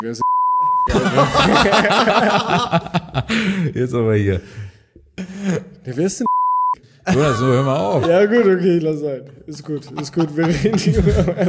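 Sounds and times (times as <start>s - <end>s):
censor bleep over spoken name: 0.0s - 0.9s, 6.3s - 6.8s
speech: 0.0s - 6.3s, 7.1s - 11.4s
people chuckling: 0.6s - 3.7s, 7.1s - 8.8s, 9.4s - 11.4s.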